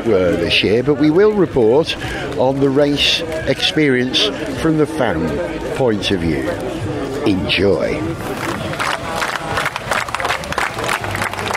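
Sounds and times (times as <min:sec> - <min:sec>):
speech: 0:00.0 - 0:08.6
crowd applause at a race circuit: 0:08.1 - 0:11.5.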